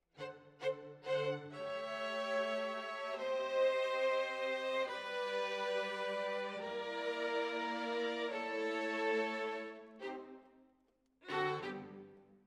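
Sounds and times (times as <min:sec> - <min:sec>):
violins: 0:00.1 - 0:10.5, 0:11.2 - 0:12.3.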